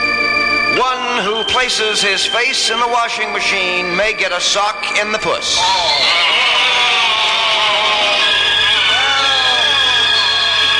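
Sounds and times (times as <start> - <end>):
speech: 0.8 - 6.7
crowd reaction sound effect: 5.6 - 10.7.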